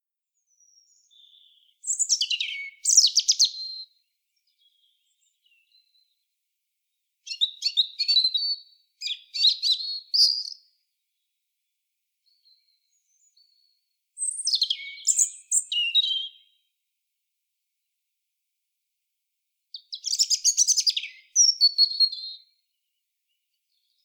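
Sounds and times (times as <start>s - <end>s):
European robin singing: 0.4s - 6.3s, 7.2s - 10.8s, 12.2s - 16.7s, 19.7s - 24.0s.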